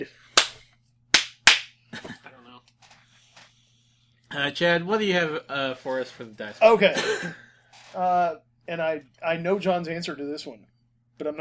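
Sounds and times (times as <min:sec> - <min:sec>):
speech: 0:00.0 - 0:00.2, 0:04.4 - 0:11.3
hands clapping: 0:00.4 - 0:01.8.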